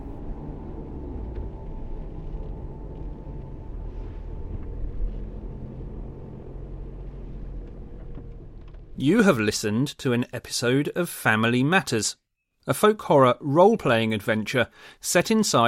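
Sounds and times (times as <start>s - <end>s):
car starting and pulling away from the drive: 0.0s - 9.3s
speech: 9.0s - 15.6s.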